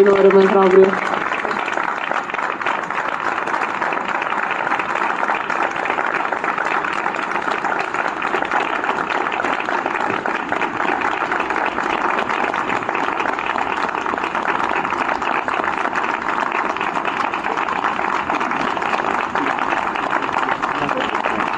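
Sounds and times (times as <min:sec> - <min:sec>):
speech: 0:00.0 - 0:01.1
audience applause: 0:00.0 - 0:21.5.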